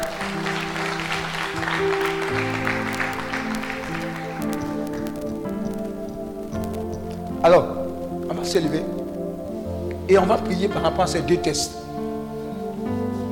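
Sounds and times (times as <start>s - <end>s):
church congregation clapping to acclaim the Lord: 0.0s - 9.2s
sustained keyboard chords: 0.0s - 13.3s
speech: 7.4s - 7.8s, 8.5s - 9.0s, 10.1s - 11.8s.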